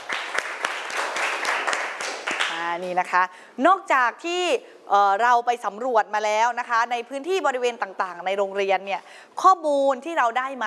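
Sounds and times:
students clapping in a school classroom: 0.0 - 2.6
speech: 2.7 - 10.6.

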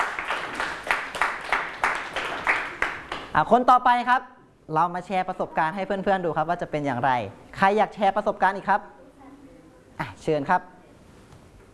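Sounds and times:
group of students clapping: 0.0 - 3.4
speech: 3.4 - 9.0, 10.0 - 10.7.

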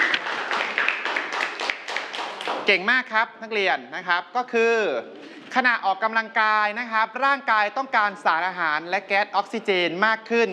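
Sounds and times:
students clapping for a classmate in a classroom: 0.0 - 2.7
speech: 2.7 - 10.5.

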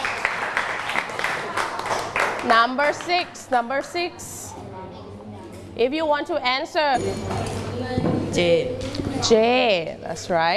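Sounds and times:
class clapping hands: 0.0 - 3.2
speech: 2.4 - 4.8, 5.8 - 7.4, 8.0 - 10.5.

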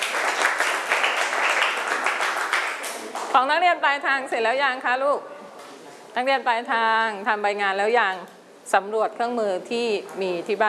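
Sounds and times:
children clapping for a classmate: 0.0 - 3.3
speech: 3.4 - 5.3, 6.1 - 10.6.

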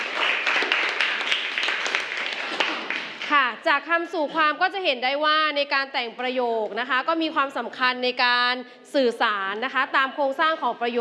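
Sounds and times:
classroom applause: 0.0 - 3.6
speech: 3.6 - 10.9.

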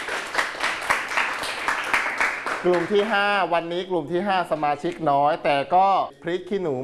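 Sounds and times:
group of people clapping in applause: 0.0 - 3.4
speech: 2.6 - 6.8.

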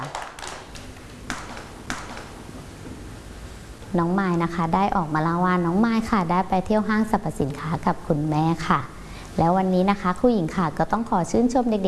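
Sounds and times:
children clapping hands: 0.0 - 2.2
speech: 3.9 - 11.8.

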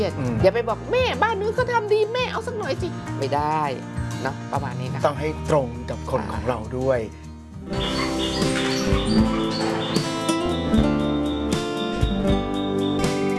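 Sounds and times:
speech: 0.0 - 8.6
hand-raised pet Java sparrow chirping and twittering: 7.7 - 13.2.

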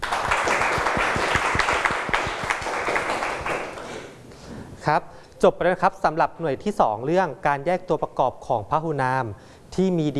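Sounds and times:
students clapping: 0.0 - 4.2
speech: 4.9 - 10.1.

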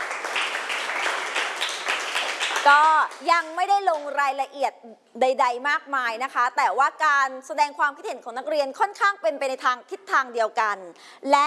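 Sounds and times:
students in a classroom applauding a classmate: 0.0 - 4.2
speech: 2.6 - 11.4.

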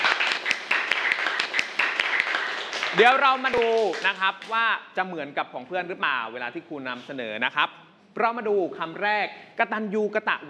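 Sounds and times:
class applauding: 0.0 - 4.6
speech: 3.0 - 10.4.

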